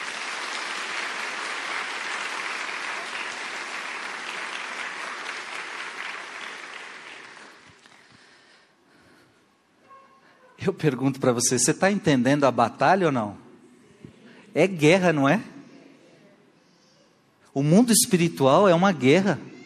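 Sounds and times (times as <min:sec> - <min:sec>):
audience applause: 0:00.0 - 0:08.1
speech: 0:10.6 - 0:13.4, 0:14.6 - 0:15.5, 0:17.6 - 0:19.5.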